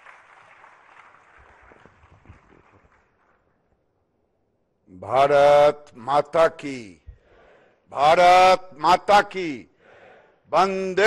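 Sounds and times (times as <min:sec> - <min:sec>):
audience applause at a handloom-sector event: 0:00.0 - 0:03.5
speech: 0:04.9 - 0:07.0, 0:07.9 - 0:09.7, 0:10.5 - 0:11.0.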